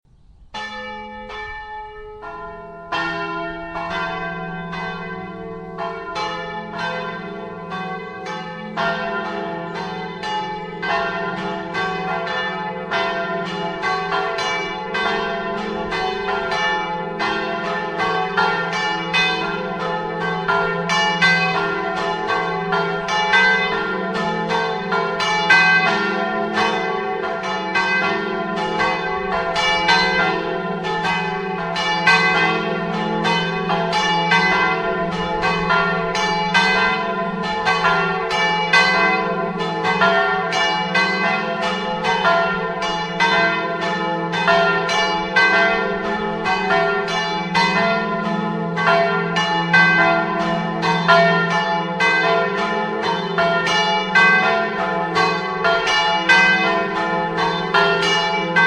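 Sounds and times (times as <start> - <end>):
bells ringing: 0.6 - 58.6.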